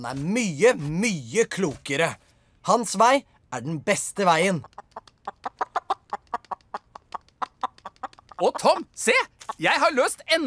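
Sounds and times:
speech: 0:00.0 - 0:04.9, 0:08.4 - 0:10.4
hen clucking: 0:04.2 - 0:10.4.

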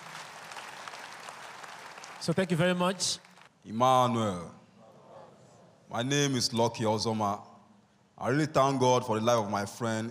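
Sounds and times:
audience clapping: 0:00.0 - 0:03.6
speech: 0:02.2 - 0:04.6, 0:05.9 - 0:07.5, 0:08.2 - 0:10.1.

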